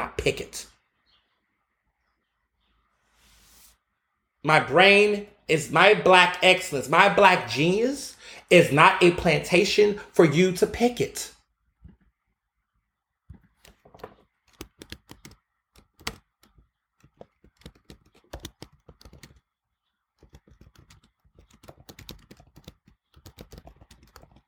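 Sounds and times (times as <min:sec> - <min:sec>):
speech: 0:00.2 - 0:00.7, 0:04.4 - 0:11.3
fingers typing on a computer keyboard: 0:13.6 - 0:19.5, 0:20.2 - 0:24.4.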